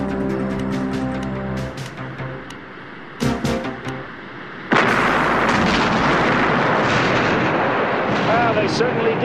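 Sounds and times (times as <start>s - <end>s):
low humming background: 0.0s - 8.1s
beach mine sharp blast: 4.7s - 8.7s
massive beach mine detonation with sustained roar and rumble: 4.7s - 9.2s.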